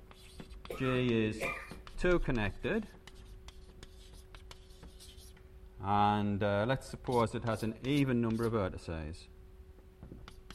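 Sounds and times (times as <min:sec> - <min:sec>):
scratchy writing strokes drawing a graph by hand: 0:00.0 - 0:05.4, 0:06.8 - 0:08.6, 0:10.2 - 0:10.5
speech: 0:00.7 - 0:03.0, 0:05.8 - 0:09.3.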